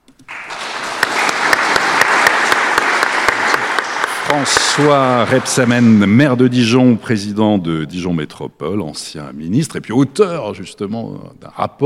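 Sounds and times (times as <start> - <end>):
studio audience applause: 0.3 - 6.5
speech: 4.3 - 11.8.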